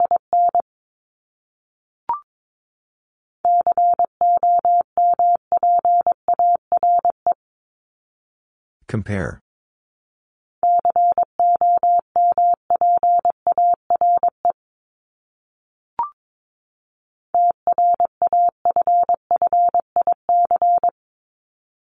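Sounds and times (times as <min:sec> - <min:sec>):
Morse code beeps at 22 wpm: 0:03.5 - 0:07.2, 0:10.6 - 0:14.4, 0:17.4 - 0:21.0
speech: 0:08.9 - 0:09.4.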